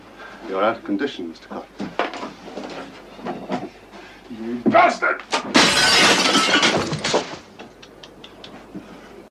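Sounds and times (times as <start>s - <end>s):
speech: 0.6s - 1.9s, 4.4s - 6.9s
typewriter thrown through a glass window: 5.3s - 7.4s.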